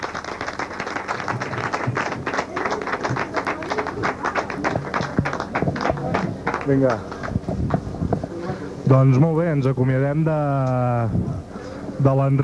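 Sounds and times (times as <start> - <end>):
audience applause: 0.0 - 7.9
speech: 6.7 - 7.1, 8.9 - 12.4.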